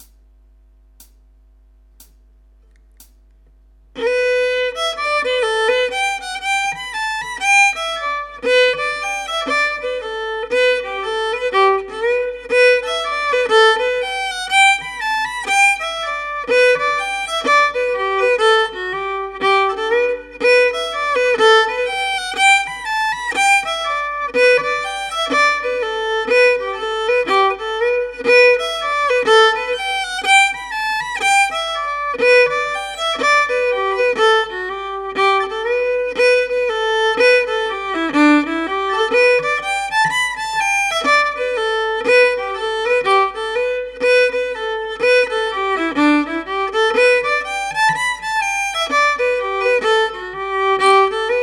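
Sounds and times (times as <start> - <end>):
solo fiddle: 4.0 - 51.4.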